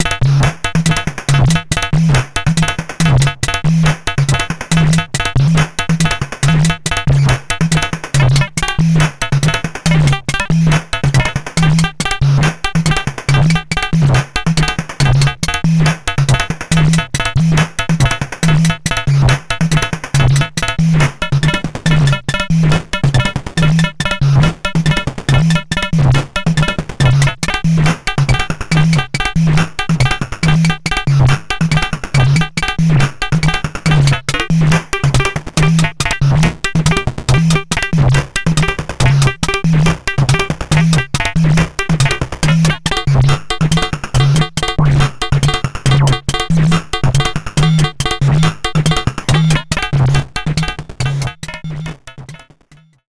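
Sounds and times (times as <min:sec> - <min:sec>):
drums: 0:00.0 - 0:53.0.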